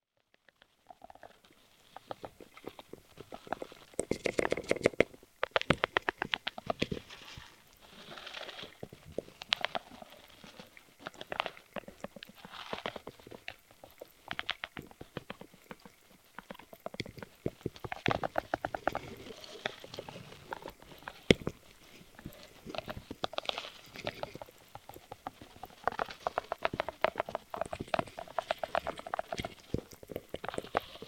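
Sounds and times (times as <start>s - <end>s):
underwater recording of a crustacean: 0.2s - 31.0s.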